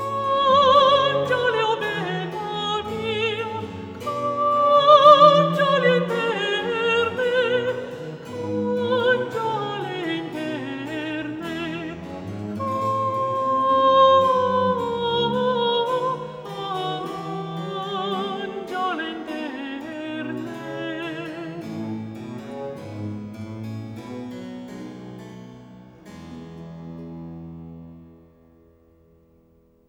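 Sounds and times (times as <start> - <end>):
recitative singing: 0.0 - 23.2.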